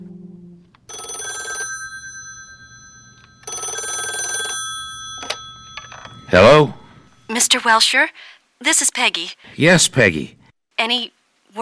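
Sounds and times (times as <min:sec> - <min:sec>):
telephone ringing: 0:00.8 - 0:07.3
speech: 0:06.3 - 0:06.8, 0:07.4 - 0:11.6.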